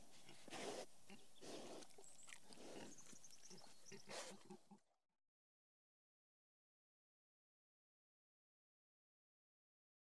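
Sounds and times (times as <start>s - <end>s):
pig grunting: 0.2s - 4.9s.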